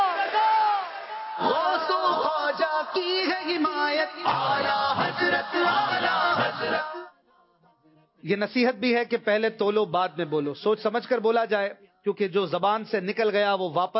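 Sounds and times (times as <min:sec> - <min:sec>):
crowd at a religious gathering shouting a chanted response: 0:00.0 - 0:02.6, 0:04.2 - 0:07.1
speech: 0:02.8 - 0:07.0, 0:08.2 - 0:13.9.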